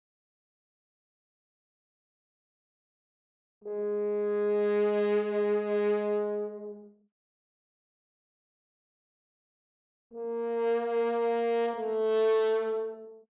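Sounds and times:
horn: 3.6 - 7.0, 10.1 - 13.3.

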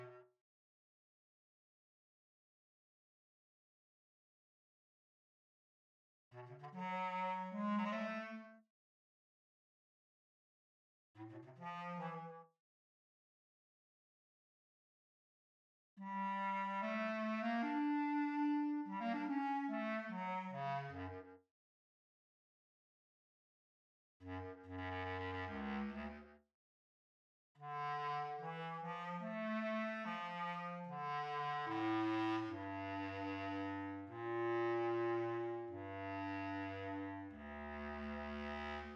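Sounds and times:
bass clarinet: 0.0 - 0.3, 6.4 - 8.6, 11.2 - 12.5, 16.0 - 21.4, 24.2 - 26.4, 27.6 - 38.9.

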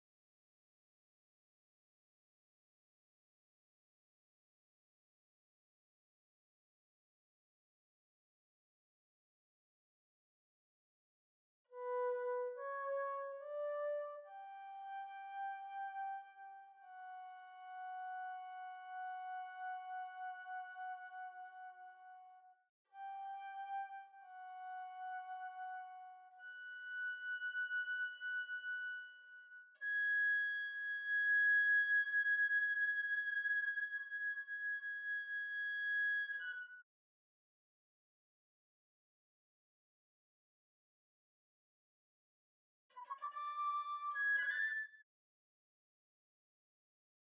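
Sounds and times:
flute: 11.7 - 36.9, 42.9 - 45.1.

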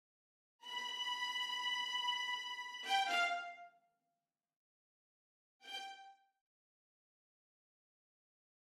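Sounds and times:
violins playing: 0.7 - 3.6.

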